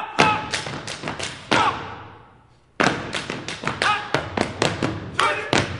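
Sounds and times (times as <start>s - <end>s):
step dance stomping and clapping: 0.2s - 2.0s, 2.8s - 5.7s.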